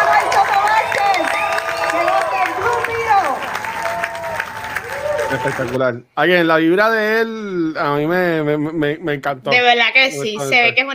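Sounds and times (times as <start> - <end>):
whoops and shouted cheers: 0.0 - 5.8
loud applause: 0.0 - 5.9
speech: 5.4 - 10.9.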